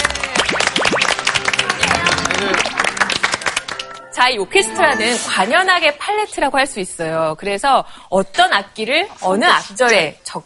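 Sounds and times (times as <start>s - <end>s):
welcoming crowd applause: 0.0s - 4.0s
speech: 4.2s - 10.4s.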